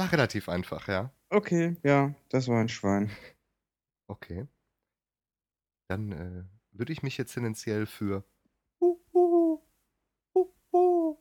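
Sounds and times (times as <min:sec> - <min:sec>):
speech: 0:00.0 - 0:03.4, 0:04.1 - 0:04.6, 0:05.9 - 0:09.0
tawny owl hooting: 0:08.8 - 0:09.6, 0:10.4 - 0:11.1.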